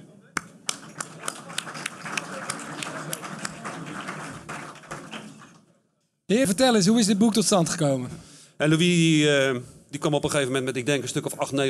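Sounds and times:
audience applause: 0:00.6 - 0:05.6
speech: 0:06.3 - 0:11.6.

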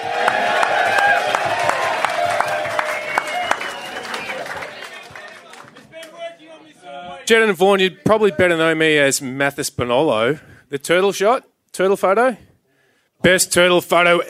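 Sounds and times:
crowd cheering and whooping at a live show in Torquay: 0:00.0 - 0:05.6
crowd clapping at a live show in Torquay: 0:00.0 - 0:06.4
speech: 0:07.3 - 0:12.5, 0:13.2 - 0:14.2.

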